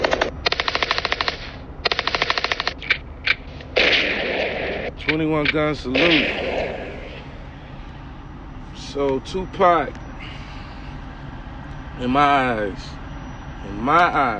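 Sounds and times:
rapid gunfire in a hip hop track: 0:00.0 - 0:02.8, 0:03.8 - 0:04.9, 0:05.9 - 0:07.2
speech: 0:05.0 - 0:06.6, 0:08.9 - 0:10.0, 0:12.0 - 0:13.0, 0:13.6 - 0:14.3.

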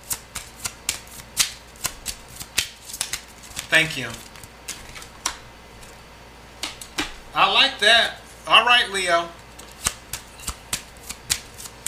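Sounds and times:
tarot cards shuffled by hand during a reading: 0:00.1 - 0:06.0, 0:09.6 - 0:11.8
speech: 0:03.7 - 0:04.3, 0:07.4 - 0:09.4.

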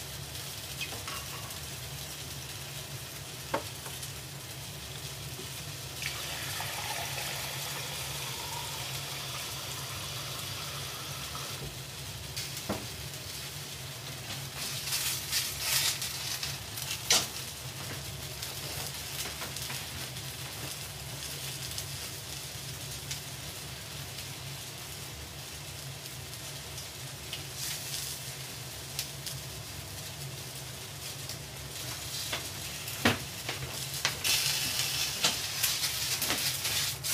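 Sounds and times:
pot of food simmering: 0:00.0 - 0:37.1.

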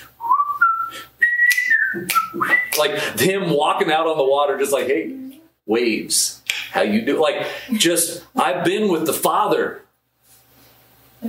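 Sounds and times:
person whistling a TV theme tune: 0:00.1 - 0:02.8
speech: 0:02.0 - 0:09.8.

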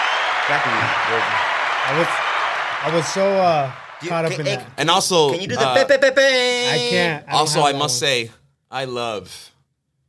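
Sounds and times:
clapping sound effect: 0:00.0 - 0:05.4
speech: 0:00.5 - 0:09.5.

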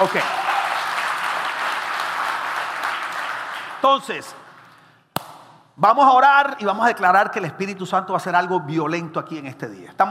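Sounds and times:
speech: 0:00.0 - 0:00.4, 0:03.8 - 0:04.4, 0:05.8 - 0:10.0
audience applause: 0:00.0 - 0:03.8.

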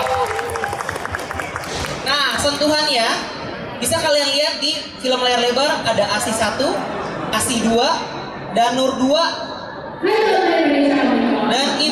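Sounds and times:
audience applause: 0:00.0 - 0:02.0
speech: 0:02.4 - 0:11.9.

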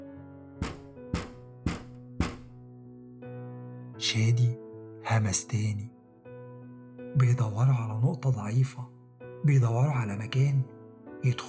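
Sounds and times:
sharp taps on an office window: 0:00.6 - 0:02.6
speech: 0:04.0 - 0:06.0, 0:07.2 - 0:11.4.

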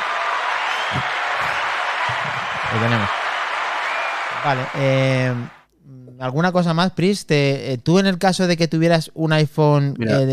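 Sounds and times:
audience applause: 0:00.0 - 0:05.6
speech: 0:00.9 - 0:01.1, 0:02.7 - 0:03.2, 0:04.4 - 0:05.6, 0:06.2 - 0:10.3.

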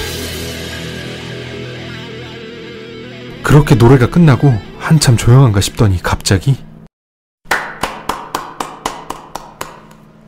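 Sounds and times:
speech: 0:03.5 - 0:06.7
man clapping his hands after a song: 0:07.5 - 0:10.1.

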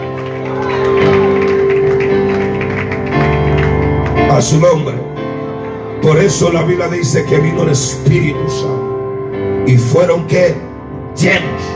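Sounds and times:
audience applauding: 0:00.0 - 0:04.8
speech: 0:04.4 - 0:05.0, 0:06.1 - 0:08.8, 0:09.6 - 0:11.7.

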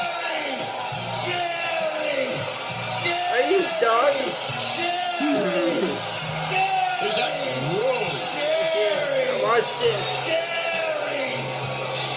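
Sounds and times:
wrestling arena crowd cheering: 0:00.0 - 0:12.1
laughter: 0:05.2 - 0:06.1
speech: 0:09.6 - 0:10.5.

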